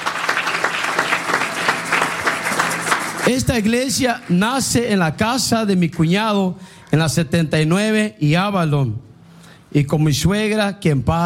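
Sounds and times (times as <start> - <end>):
audience applause: 0.0 - 4.6
speech: 3.3 - 9.1, 9.7 - 11.2.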